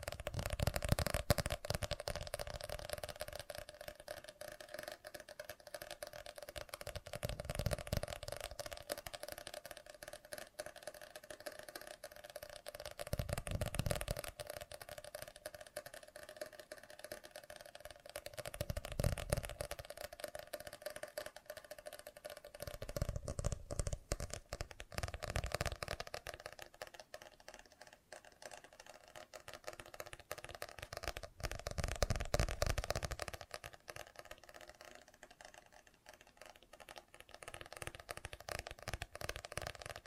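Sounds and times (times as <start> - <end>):
fast dense tapping: 0.0 - 40.0.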